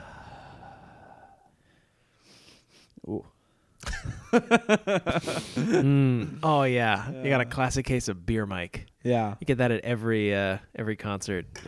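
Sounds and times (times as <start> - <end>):
people breathing into microphones to set recording levels: 0.0 - 2.9
speech: 3.1 - 3.4, 4.3 - 11.6
laughter: 3.8 - 6.4.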